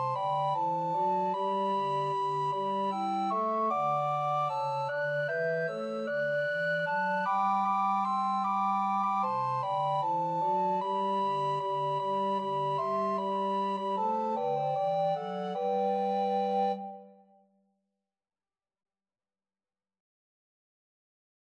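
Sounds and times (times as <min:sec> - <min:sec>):
recorder quartet: 0:00.0 - 0:17.1.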